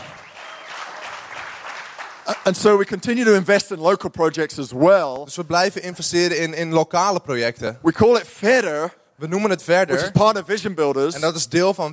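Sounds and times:
audience applause: 0:00.0 - 0:02.6
speech: 0:02.3 - 0:11.9.

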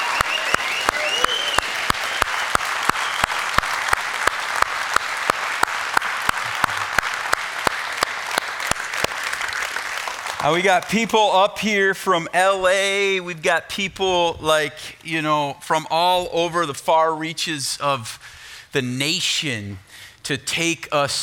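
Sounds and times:
audience applause: 0:00.0 - 0:11.0
sharp rhythmic claps: 0:00.0 - 0:11.5
speech: 0:10.4 - 0:21.2.

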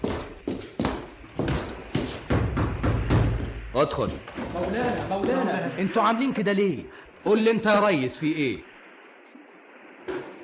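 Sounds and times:
knocking on a door: 0:00.8 - 0:03.7
speech: 0:03.8 - 0:08.7.

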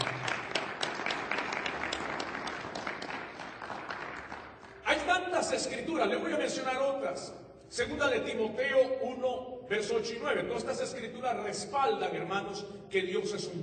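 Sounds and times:
audience applause: 0:00.0 - 0:04.8
speech: 0:05.1 - 0:13.6.

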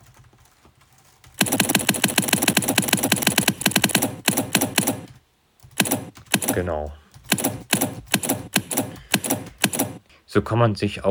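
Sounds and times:
typewriter keystrokes: 0:01.2 - 0:10.0
speech: 0:06.6 - 0:07.0, 0:10.3 - 0:11.0.

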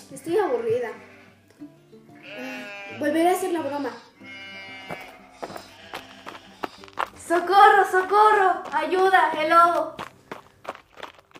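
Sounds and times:
sheep bleating: 0:00.0 - 0:01.5, 0:02.1 - 0:07.0
speech: 0:00.1 - 0:04.1, 0:07.3 - 0:10.0.

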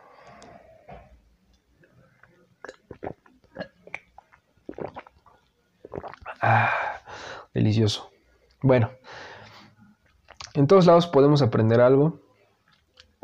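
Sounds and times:
sipping coffee: 0:02.2 - 0:07.3
speech: 0:07.6 - 0:09.0, 0:10.6 - 0:12.2.

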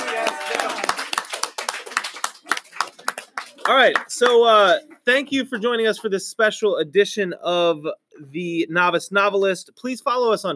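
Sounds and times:
audience clapping for two Valentine couples on a show: 0:00.0 - 0:05.0
speech: 0:03.7 - 0:10.5.

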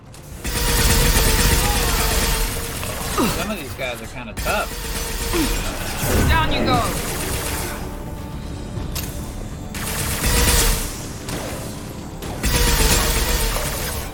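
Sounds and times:
rapid gunfire from ice ammunition in a video game shooter: 0:00.2 - 0:03.5, 0:04.4 - 0:06.0, 0:06.7 - 0:07.9, 0:09.7 - 0:14.1
speech: 0:03.5 - 0:07.2.

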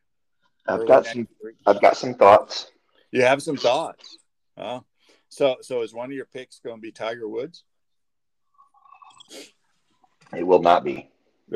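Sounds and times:
speech: 0:00.7 - 0:07.7, 0:09.3 - 0:09.6, 0:10.3 - 0:11.5
person slurping a drink: 0:08.5 - 0:09.6.

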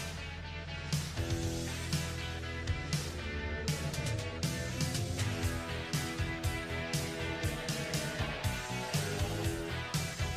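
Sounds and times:
music with sustained tones: 0:00.0 - 0:10.3
deep low hum: 0:00.1 - 0:10.3.

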